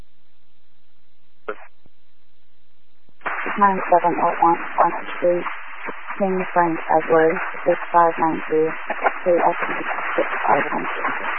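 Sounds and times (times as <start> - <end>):
garbled voice on a police radio transmission: 1.5 - 1.7, 3.3 - 5.5, 6.2 - 11.2
speech: 3.6 - 11.3.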